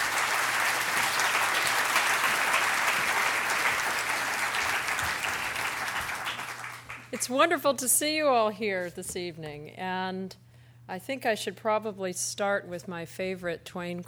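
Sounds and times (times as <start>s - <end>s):
audience applause welcoming a speaker to a library author event: 0.0s - 7.2s
speech: 7.2s - 14.0s.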